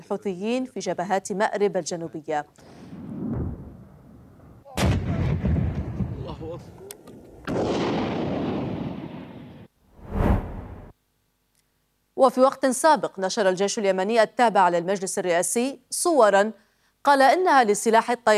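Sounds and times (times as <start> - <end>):
speech: 0.1 - 2.8, 6.6 - 6.9, 12.2 - 18.3
artillery shelling on Yemen's southern Marib fronts: 2.9 - 10.9.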